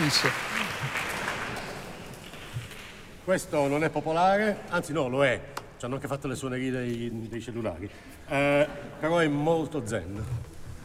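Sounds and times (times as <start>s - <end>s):
concert audience applauding a cellist: 0.0s - 2.8s
speech: 0.1s - 0.5s, 3.3s - 10.5s.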